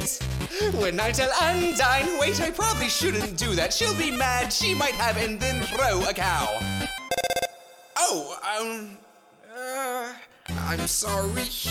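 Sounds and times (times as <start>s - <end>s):
person speaking animatedly: 0.0s - 6.7s, 8.0s - 11.6s
speech: 0.6s - 7.0s, 8.1s - 9.1s, 10.7s - 11.6s
mobile phone ringing: 6.8s - 7.9s.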